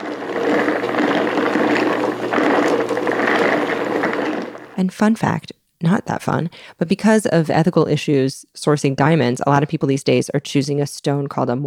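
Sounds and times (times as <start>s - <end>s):
low rock tumbler motor hum: 0.0s - 4.8s
stones rattling in rotating rock tumbler barrel with grit: 0.0s - 4.8s
speech: 4.8s - 11.6s.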